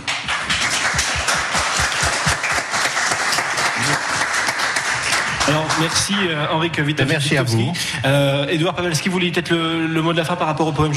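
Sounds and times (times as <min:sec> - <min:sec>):
audience applause: 0:00.0 - 0:06.3
speech: 0:05.5 - 0:10.9.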